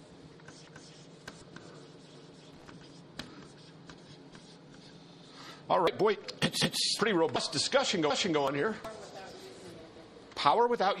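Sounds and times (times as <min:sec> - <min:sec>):
writing on a board: 0:00.4 - 0:05.3
speech: 0:05.7 - 0:09.0, 0:10.4 - 0:10.9.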